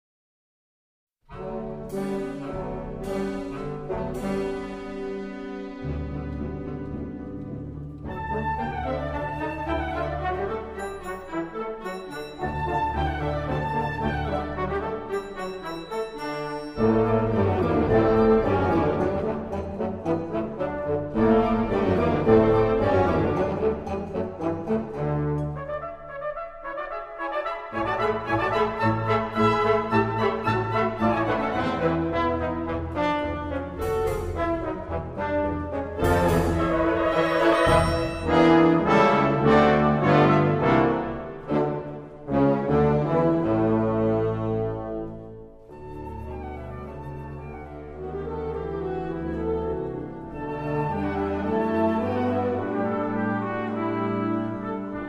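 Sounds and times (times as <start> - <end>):
piano: 1.3 - 55.0.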